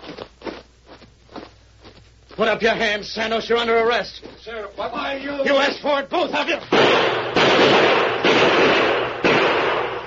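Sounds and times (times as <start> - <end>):
speech: 2.4 - 8.8
gunshots: 6.7 - 10.0.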